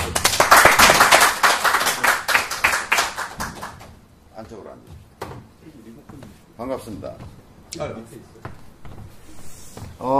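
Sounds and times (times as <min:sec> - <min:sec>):
audience clapping: 0:00.0 - 0:04.0
speech: 0:06.6 - 0:08.6, 0:10.0 - 0:10.1.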